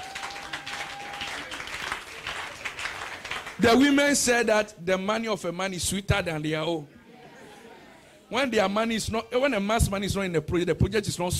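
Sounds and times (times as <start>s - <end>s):
audience clapping: 0.0s - 4.0s
speech: 3.6s - 7.0s, 8.3s - 11.3s.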